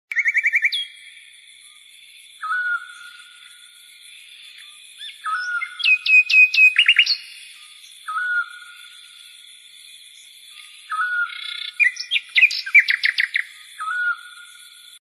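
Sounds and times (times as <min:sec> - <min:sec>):
bird calls with trill, whistled notes and chirps: 0:00.1 - 0:01.1, 0:02.4 - 0:03.4, 0:05.0 - 0:09.0, 0:10.6 - 0:14.7.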